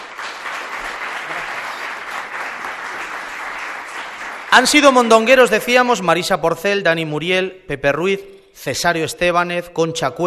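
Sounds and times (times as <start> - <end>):
audience applauding: 0.0 - 5.4
speech: 4.5 - 10.2.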